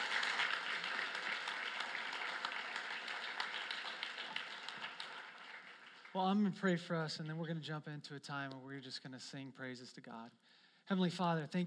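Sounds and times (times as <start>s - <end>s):
applause at a worship gathering: 0.0s - 7.3s
speech: 6.2s - 11.6s.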